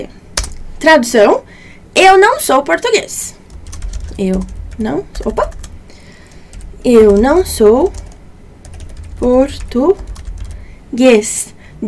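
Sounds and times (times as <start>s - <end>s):
speech: 0.0s - 0.2s, 0.8s - 3.4s, 4.2s - 5.6s, 6.8s - 8.0s, 9.2s - 10.1s, 10.9s - 11.8s
keyboard typing: 0.4s - 0.6s, 2.6s - 10.7s.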